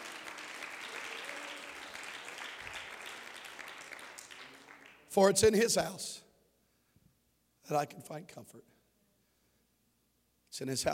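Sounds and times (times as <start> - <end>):
audience clapping hands: 0.0 - 5.5
speech: 5.2 - 6.2, 7.7 - 8.8, 10.6 - 10.9.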